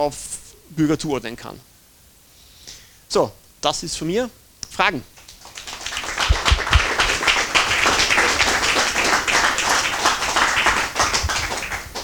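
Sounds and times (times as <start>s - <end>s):
speech: 0.0s - 1.7s, 3.1s - 5.1s
audience clapping: 5.2s - 12.0s.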